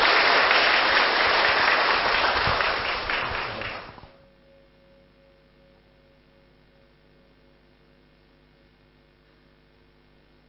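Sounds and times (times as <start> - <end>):
audience applause welcoming a speaker: 0.0 - 4.1.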